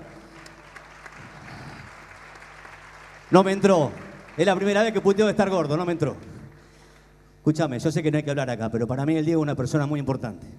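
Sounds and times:
audience applause: 0:00.0 - 0:06.0
speech: 0:03.3 - 0:06.3, 0:07.4 - 0:10.5.

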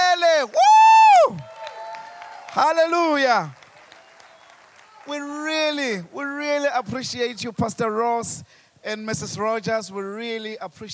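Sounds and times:
audience cheering: 0:00.2 - 0:06.0
audience clapping: 0:01.2 - 0:06.1
speech: 0:02.6 - 0:03.6, 0:05.0 - 0:10.9.

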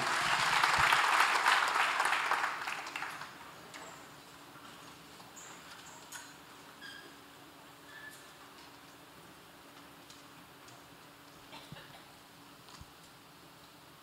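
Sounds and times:
audience applause: 0:00.0 - 0:03.6.

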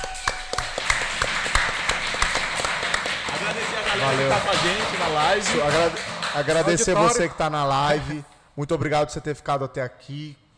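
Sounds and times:
audience applause: 0:00.0 - 0:07.3
speech: 0:04.0 - 0:10.4.

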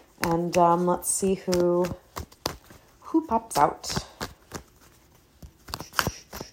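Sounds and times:
deck of tarot cards being shuffled: 0:00.0 - 0:06.5
speech: 0:00.2 - 0:02.0, 0:03.1 - 0:04.1.

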